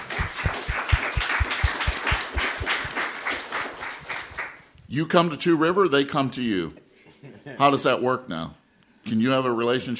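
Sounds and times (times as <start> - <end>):
audience applause: 0.0 - 4.6
speech: 4.9 - 6.8, 7.4 - 9.9.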